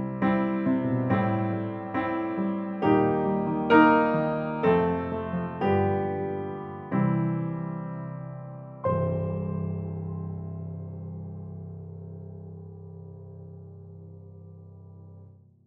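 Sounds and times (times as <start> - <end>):
upright piano: 0.0 - 15.3.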